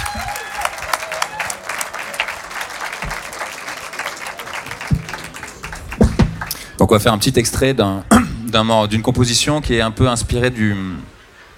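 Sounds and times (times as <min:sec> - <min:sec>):
audience applause: 0:00.0 - 0:06.8
speech: 0:06.8 - 0:11.1.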